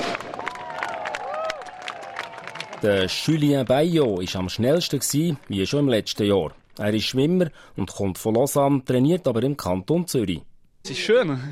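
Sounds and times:
spectators clapping along the shore of a lake at a swimming race: 0:00.0 - 0:07.4
speech: 0:02.8 - 0:11.5.

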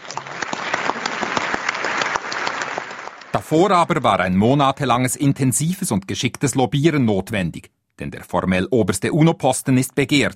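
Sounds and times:
applause at an assembly vote: 0:00.0 - 0:04.0
speech: 0:03.5 - 0:10.3.

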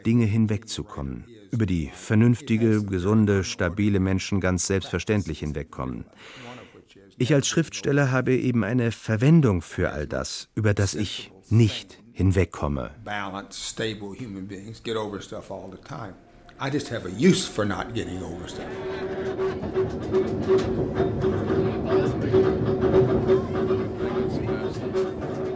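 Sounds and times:
speech: 0:00.0 - 0:19.8
old dark green streetcar squealing in New Orleans: 0:16.1 - 0:25.5.

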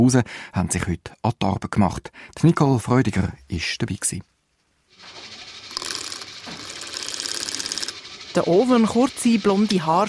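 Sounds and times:
speech: 0:00.0 - 0:04.3, 0:08.4 - 0:10.0
drill press drilling sheet metal: 0:05.0 - 0:10.0.

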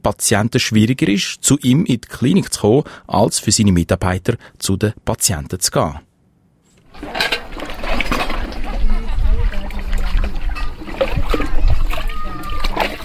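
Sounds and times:
speech: 0:00.0 - 0:06.1
young woman washing dishes in a basin on the ground: 0:06.8 - 0:13.0.

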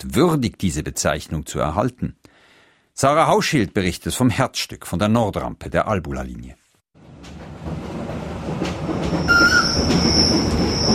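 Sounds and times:
speech: 0:00.0 - 0:02.2, 0:03.0 - 0:06.6
small red train rumbling past: 0:07.0 - 0:10.9
shrill high-pitched train whistle: 0:09.2 - 0:10.9.

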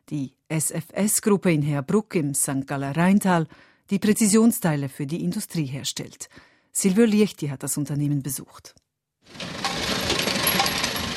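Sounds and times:
speech: 0:00.1 - 0:09.6
industrial press machines rattling and humming in a factory hall: 0:09.3 - 0:11.1.

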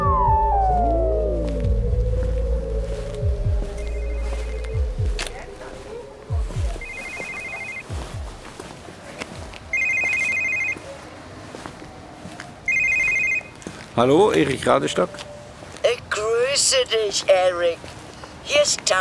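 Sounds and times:
dull low thuds: 0:00.0 - 0:07.0, 0:07.9 - 0:09.7
telephone ringing: 0:06.8 - 0:08.0, 0:09.7 - 0:10.8, 0:12.7 - 0:13.6
speech: 0:14.0 - 0:15.3, 0:16.7 - 0:19.0.

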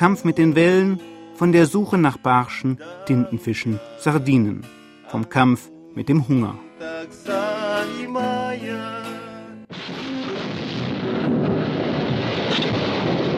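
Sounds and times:
speech: 0:00.0 - 0:09.0
underwater explosion from blast fishing: 0:09.7 - 0:13.3.

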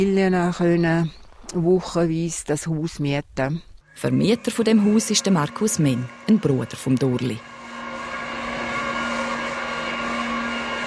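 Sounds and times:
speech: 0:00.0 - 0:07.5
vacuum cleaner humming inside house: 0:04.0 - 0:10.8.

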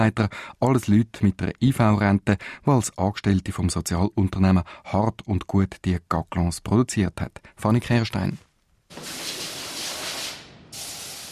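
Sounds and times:
speech: 0:00.0 - 0:09.3
spray nozzle hissing in old factory hall: 0:08.9 - 0:11.3.

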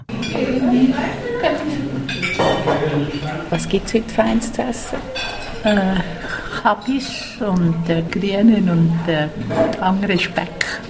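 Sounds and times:
dishes and cutlery clinking in a bright dining hall at lunchtime: 0:00.0 - 0:10.8
speech: 0:00.3 - 0:01.9, 0:02.9 - 0:10.8.

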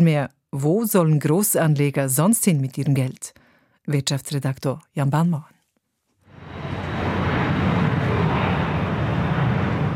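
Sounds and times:
speech: 0:00.0 - 0:05.5
airplane engine noise at an airport: 0:06.3 - 0:09.9.

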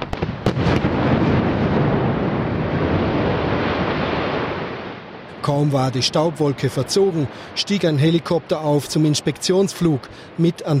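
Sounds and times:
rockfall area blasting explosion in Gurtnellen: 0:00.0 - 0:05.3
speech: 0:05.5 - 0:10.7.

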